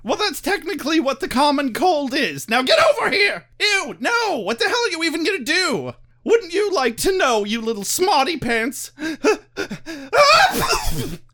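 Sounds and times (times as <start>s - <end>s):
speech: 0.3s - 11.2s
person sneezing: 10.3s - 11.3s.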